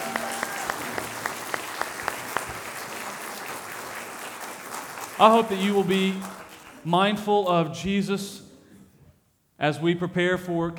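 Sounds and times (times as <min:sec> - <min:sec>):
audience applause for choir: 0:00.0 - 0:07.6
speech: 0:05.2 - 0:08.4, 0:09.6 - 0:10.7.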